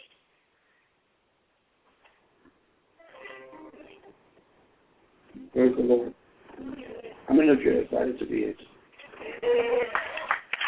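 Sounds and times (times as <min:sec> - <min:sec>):
speech: 0:05.5 - 0:08.8
audience clapping: 0:09.6 - 0:10.6.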